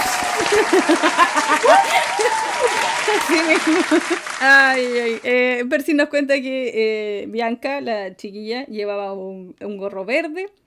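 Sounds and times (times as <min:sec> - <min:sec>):
laughter: 0:00.0 - 0:05.2
sitcom applause sound effect: 0:00.0 - 0:05.3
speech: 0:00.5 - 0:10.6.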